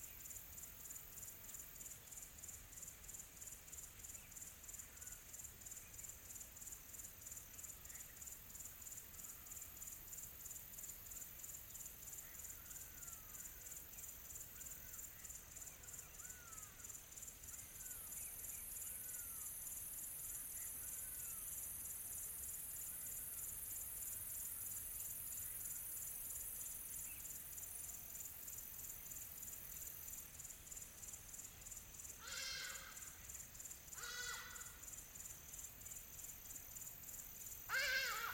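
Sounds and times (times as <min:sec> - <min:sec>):
shrill chorus of insects buzzing in a tropical forest: 0:00.0 - 0:38.3
calls of exotic birds: 0:32.2 - 0:33.2, 0:33.9 - 0:34.8, 0:37.7 - 0:38.3.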